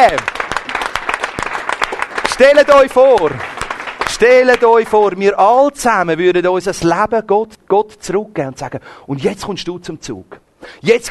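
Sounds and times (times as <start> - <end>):
speech: 0.0 - 0.4, 2.4 - 3.5, 4.2 - 11.0
audience applauding: 0.0 - 5.1.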